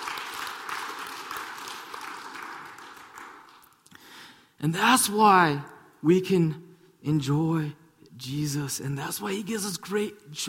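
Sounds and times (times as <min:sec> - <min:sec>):
audience clapping: 0:00.0 - 0:04.1
speech: 0:04.6 - 0:10.4.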